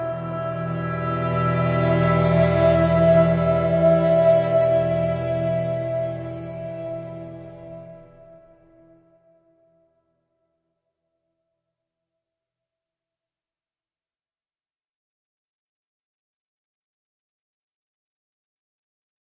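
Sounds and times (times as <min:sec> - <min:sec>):
ambient music: 0:00.0 - 0:09.9.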